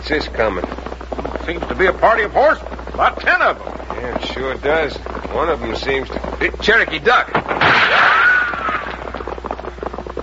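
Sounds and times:
speech: 0.1 - 8.2
gunshot fired at riders with ricochet: 7.6 - 8.4.

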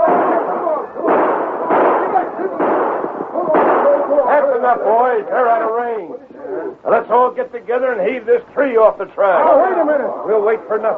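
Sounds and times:
rifle gunshots: 0.0 - 5.0
speech: 4.7 - 10.9.

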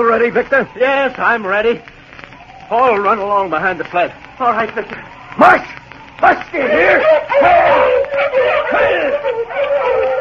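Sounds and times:
speech: 0.0 - 1.9, 2.7 - 10.2
sled dogs barking and howling: 6.3 - 10.2.

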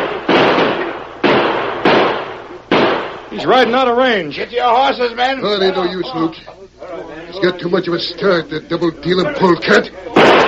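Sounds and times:
gunshots fired at a fleeing rider: 0.0 - 3.8, 10.2 - 10.4
speech: 3.4 - 10.4.

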